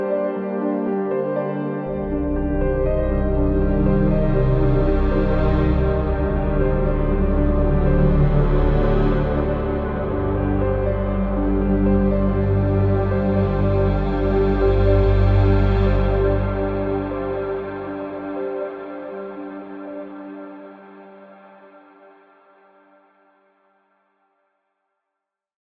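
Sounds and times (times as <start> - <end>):
ambient exploration music: 0.0 - 23.0.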